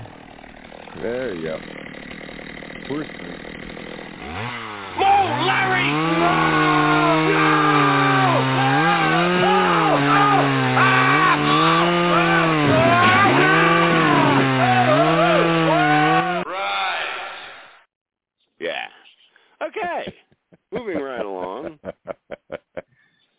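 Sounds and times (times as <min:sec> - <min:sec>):
bone saw cutting: 0:00.0 - 0:16.4
speech: 0:00.9 - 0:01.9, 0:02.9 - 0:07.4
laughter: 0:05.6 - 0:16.4, 0:19.7 - 0:22.9.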